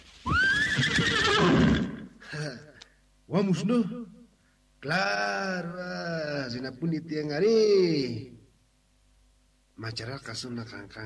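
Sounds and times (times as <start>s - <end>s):
horse neighing: 0.2s - 2.1s
speech: 3.3s - 4.1s, 4.8s - 8.4s, 9.8s - 11.0s.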